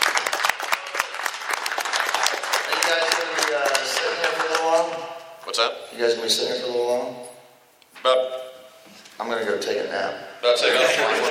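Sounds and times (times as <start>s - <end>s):
applause for a game winner: 0.0s - 5.1s
speech: 4.7s - 7.3s, 8.0s - 8.5s, 9.2s - 11.2s
laughter: 10.6s - 11.2s.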